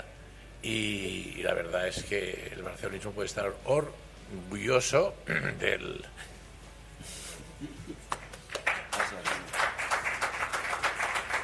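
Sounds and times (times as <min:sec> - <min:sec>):
speech: 0:00.6 - 0:06.3
crowd applause: 0:08.1 - 0:11.4.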